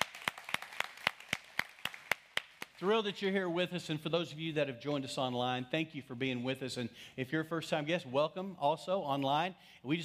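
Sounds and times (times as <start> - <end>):
audience hand clapping: 0.0 - 2.8
speech: 2.8 - 10.0.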